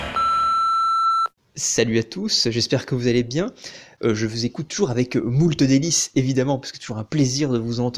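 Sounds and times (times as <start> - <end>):
answering machine beep: 0.2 - 1.3
speech: 1.8 - 7.9.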